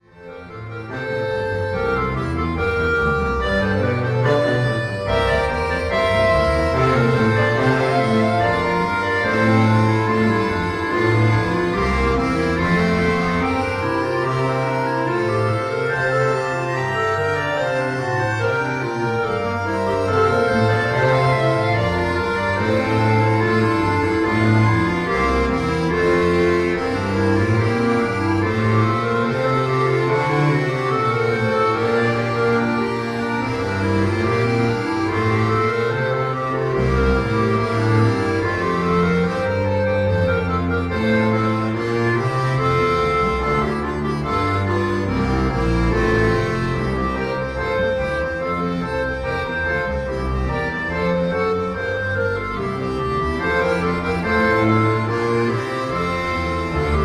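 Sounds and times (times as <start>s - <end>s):
computer-generated trio music: 0.0s - 57.0s.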